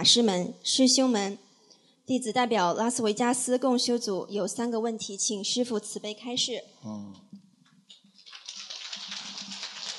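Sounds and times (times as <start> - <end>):
speech: 0.0 - 1.4, 2.1 - 7.4
group applause: 8.2 - 9.9.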